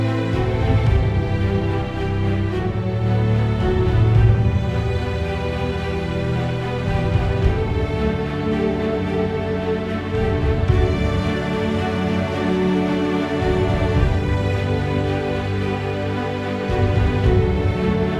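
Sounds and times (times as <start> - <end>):
orchestral ambient music: 0.0 - 18.1.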